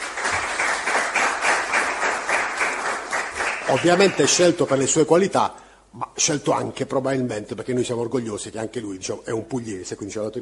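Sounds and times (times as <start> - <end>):
audience applause at a presentation event: 0.0 - 4.9
speech: 3.7 - 10.4.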